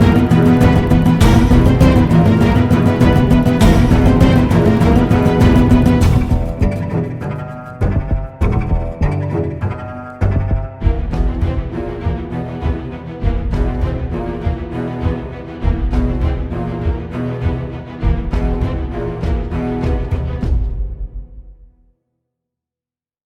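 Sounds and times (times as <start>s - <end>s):
heartbeat: 0.0s - 6.9s, 7.8s - 9.2s, 10.2s - 12.2s, 13.2s - 21.1s.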